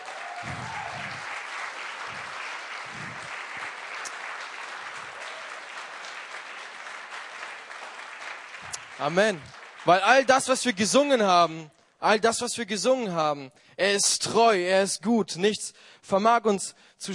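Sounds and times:
audience applause: 0:00.0 - 0:10.5
speech: 0:09.0 - 0:17.1.

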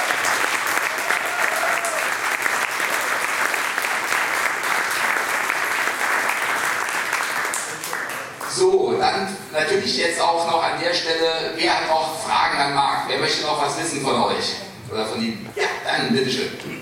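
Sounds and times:
audience applause: 0:00.0 - 0:08.5
speech: 0:09.6 - 0:16.8.

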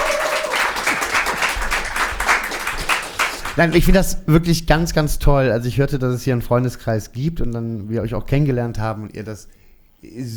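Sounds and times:
applause: 0:00.0 - 0:03.8
speech: 0:03.6 - 0:10.3.

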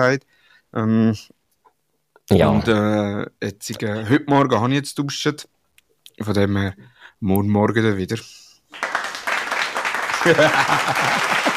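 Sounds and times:
speech: 0:00.0 - 0:01.4, 0:02.3 - 0:05.6, 0:06.2 - 0:08.9, 0:10.2 - 0:11.5
laughter: 0:03.8 - 0:04.5, 0:10.1 - 0:11.5
applause sound effect: 0:08.7 - 0:11.5.

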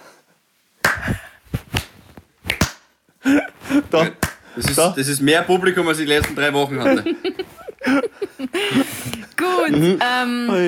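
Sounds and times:
sharp crisp hand claps of a slow clap: 0:00.8 - 0:02.9, 0:04.1 - 0:04.9, 0:06.2 - 0:06.5
speech: 0:03.3 - 0:10.6
laughter: 0:06.7 - 0:09.1.

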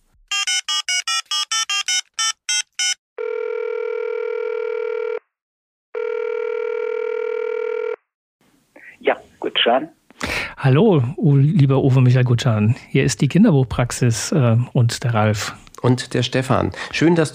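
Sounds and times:
telephone keypad dialing tones: 0:00.3 - 0:03.0
telephone ringing tones: 0:00.3 - 0:05.2, 0:06.0 - 0:08.0
speech: 0:09.7 - 0:10.0, 0:10.6 - 0:17.3.

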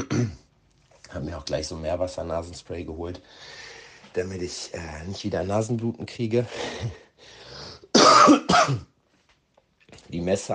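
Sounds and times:
speech: 0:00.0 - 0:00.4, 0:01.1 - 0:07.4, 0:08.2 - 0:08.9, 0:10.0 - 0:10.5
coughing: 0:00.0 - 0:00.5, 0:07.7 - 0:09.0
throat clearing: 0:00.0 - 0:00.5.

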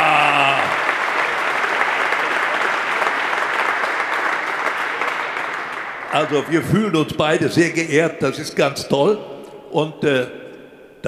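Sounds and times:
audience applause: 0:00.0 - 0:07.4
speech: 0:06.2 - 0:10.4.

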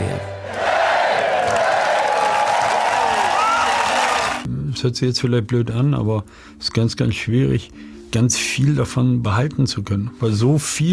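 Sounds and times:
crowd cheering and applauding at airport: 0:00.0 - 0:04.5
speech: 0:04.8 - 0:10.9.

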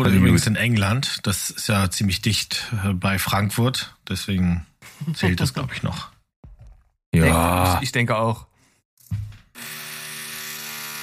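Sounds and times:
speech: 0:00.0 - 0:06.2, 0:07.1 - 0:08.5
neighbor drilling with a power drill: 0:09.6 - 0:11.0.

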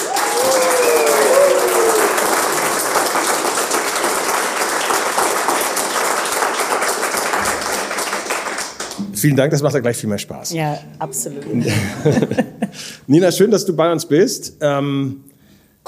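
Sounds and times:
live audience at a talk event clapping and making noise: 0:00.0 - 0:09.0
speech: 0:09.2 - 0:15.3
laughter: 0:11.5 - 0:12.9.

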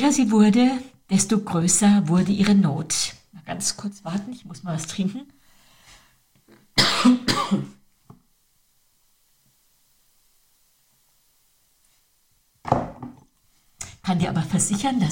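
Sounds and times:
speech: 0:00.0 - 0:05.4, 0:06.8 - 0:07.8, 0:14.1 - 0:15.0
person coughing: 0:06.8 - 0:07.8.

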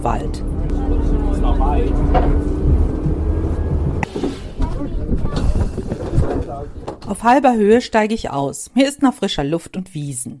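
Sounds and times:
speech: 0:00.0 - 0:00.5, 0:01.4 - 0:02.8, 0:06.5 - 0:10.3
creaking rack railway climbing a mountain: 0:00.0 - 0:07.2.

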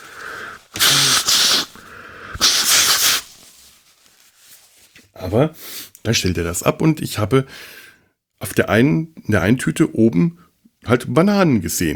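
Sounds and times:
nose blowing: 0:00.0 - 0:03.3
speech: 0:05.2 - 0:07.8, 0:08.4 - 0:11.9.

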